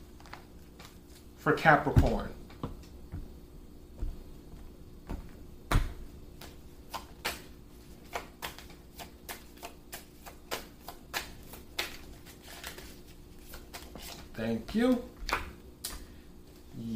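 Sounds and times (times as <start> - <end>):
tarot cards being shuffled and dealt for a reading: 0.2 - 1.3, 6.4 - 16.1
speech: 1.4 - 2.4, 14.7 - 15.1.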